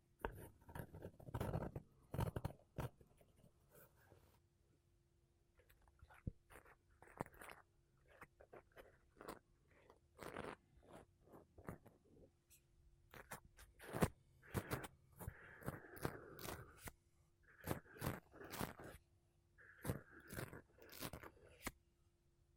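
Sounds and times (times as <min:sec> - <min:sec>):
makeup brushes and a sponge rubbing a microphone: 0:00.2 - 0:03.0, 0:06.0 - 0:12.0, 0:13.1 - 0:19.0, 0:19.6 - 0:21.8.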